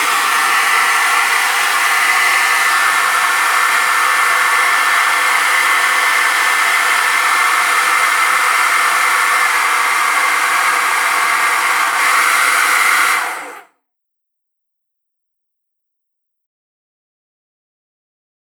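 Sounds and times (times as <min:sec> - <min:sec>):
hairdryer blowing: 0:00.0 - 0:13.7.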